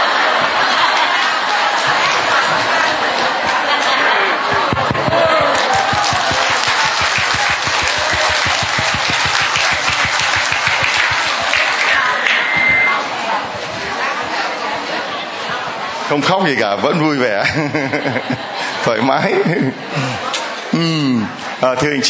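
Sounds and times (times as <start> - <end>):
laughter: 0.0 - 12.5, 16.8 - 21.4
crowd applause: 0.0 - 13.4
murmur of voices: 0.0 - 22.0
speech: 16.1 - 22.0.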